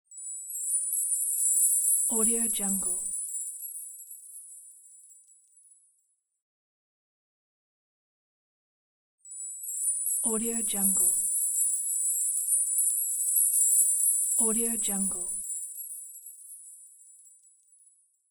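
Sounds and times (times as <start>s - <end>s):
gold dust shimmering sparkle sound: 0.1s - 5.8s, 9.2s - 18.0s.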